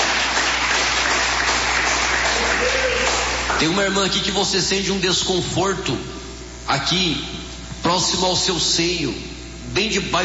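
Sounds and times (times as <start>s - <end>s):
audience clapping: 0.0s - 3.8s
speech: 3.6s - 10.2s.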